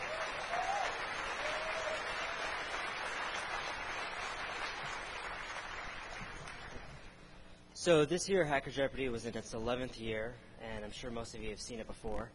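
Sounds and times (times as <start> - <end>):
faint whistle or cheer: 0.0 - 2.2
audience applause: 0.0 - 7.1
speech: 7.8 - 12.3.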